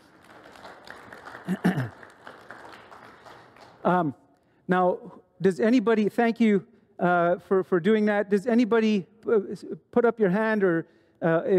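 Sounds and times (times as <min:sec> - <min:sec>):
audience applause: 0:00.0 - 0:03.8
speech: 0:01.5 - 0:02.0, 0:03.8 - 0:11.5.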